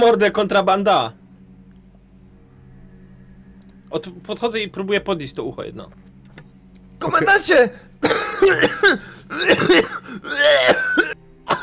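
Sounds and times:
speech: 0.0 - 1.2, 3.9 - 6.1, 7.0 - 11.2
harsh rasping coughing fit from a dust-lung attack: 8.0 - 11.6.

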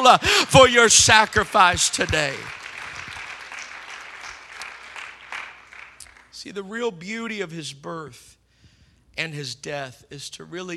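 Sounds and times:
speech: 0.0 - 2.6, 6.4 - 8.4, 9.2 - 10.7
audience clapping hands: 0.0 - 6.4.

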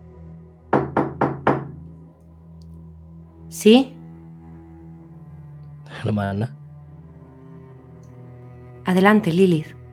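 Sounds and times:
knocking on a bedroom door: 0.7 - 1.8
speech: 3.5 - 4.0, 6.0 - 6.6, 8.9 - 9.8.

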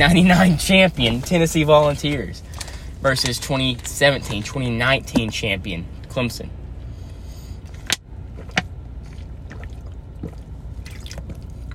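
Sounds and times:
speech: 0.0 - 6.6
person drinking water: 7.5 - 11.7.

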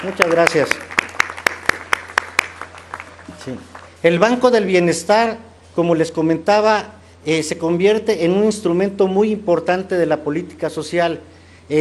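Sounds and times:
speech: 0.0 - 0.9, 3.4 - 11.7
audience clapping for military personnel: 0.0 - 4.0.

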